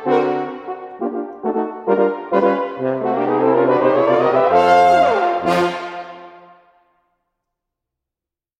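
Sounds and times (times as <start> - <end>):
Austrian horn cueca music: 0.0 - 6.5.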